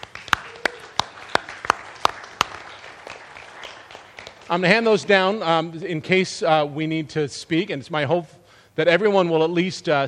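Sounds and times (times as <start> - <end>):
applause hand claps: 0.0 - 4.7
speech: 4.5 - 10.0.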